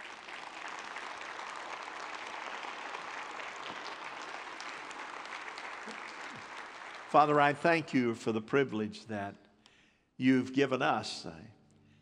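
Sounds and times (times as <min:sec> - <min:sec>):
audience clapping hands in dense applause: 0:00.0 - 0:07.6
speech: 0:07.1 - 0:09.4, 0:10.2 - 0:11.6.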